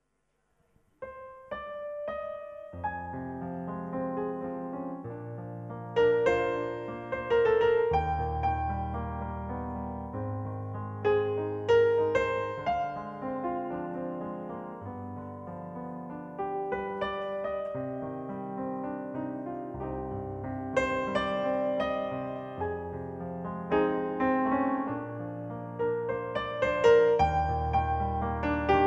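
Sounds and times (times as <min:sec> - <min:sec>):
solo piano: 0:00.0 - 0:28.8.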